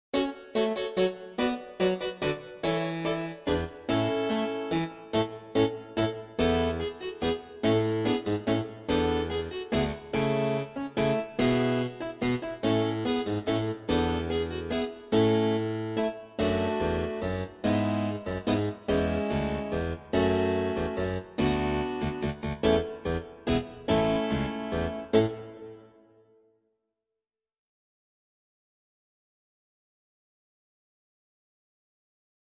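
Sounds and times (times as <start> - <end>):
musical accompaniment only: 0.2 - 26.0.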